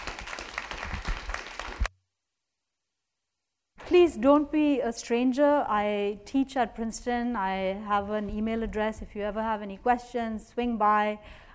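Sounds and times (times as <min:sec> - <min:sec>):
audience applause: 0:00.0 - 0:01.9
speech: 0:03.9 - 0:11.4.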